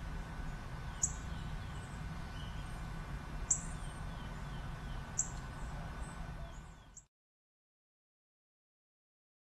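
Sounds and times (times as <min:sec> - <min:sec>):
many birds chirping in Bexar County Texas USA: 0:00.3 - 0:07.1.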